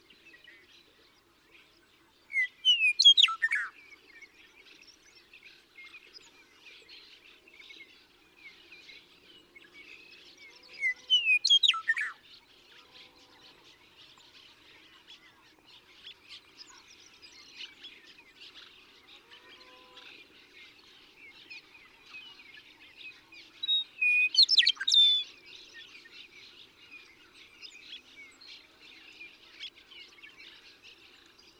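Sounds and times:
western meadowlark song: 2.3s - 3.8s, 10.8s - 12.2s, 23.6s - 25.3s.

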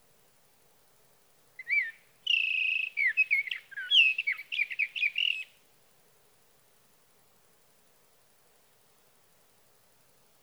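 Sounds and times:
sage thrasher whistling and warbling: 1.6s - 5.5s.

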